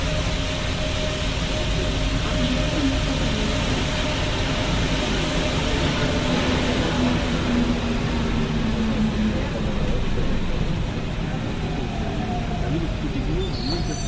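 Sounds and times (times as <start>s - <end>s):
Paris Métro train roar: 0.0s - 14.0s
brief squeal: 13.4s - 14.0s.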